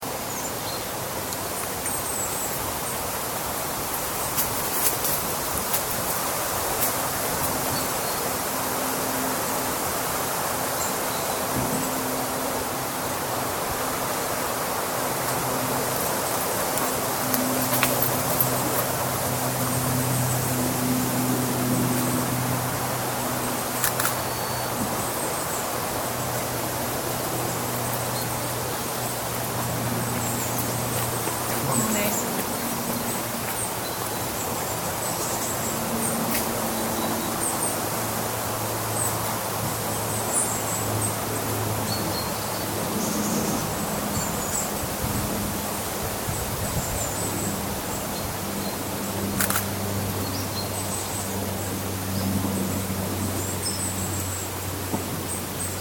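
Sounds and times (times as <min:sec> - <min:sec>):
Stopham woodland soundscape: 0:00.0 - 0:55.7.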